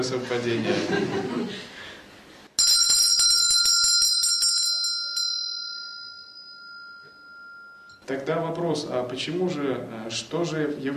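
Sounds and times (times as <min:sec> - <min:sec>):
speech: 0:00.0 - 0:01.9, 0:08.1 - 0:10.9
laughter: 0:00.4 - 0:01.9
small hand bell ringing: 0:02.6 - 0:08.1.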